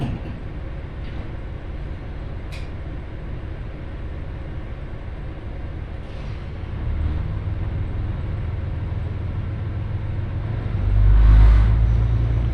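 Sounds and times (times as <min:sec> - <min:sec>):
Ibara Railway train rumble between Souun-no-Sato Ebara and Soja: 0:00.0 - 0:12.5
loud rushing swell: 0:10.7 - 0:12.5.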